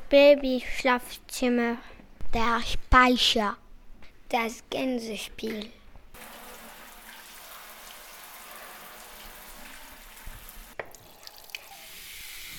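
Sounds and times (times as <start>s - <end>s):
speech: 0.1s - 3.6s, 4.3s - 5.8s
tap water running into a washbasin: 6.2s - 12.5s.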